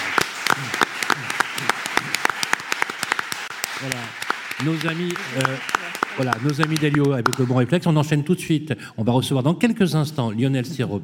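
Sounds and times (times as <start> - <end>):
audience applause: 0.0 - 7.7
speech: 0.6 - 0.8, 3.8 - 11.0.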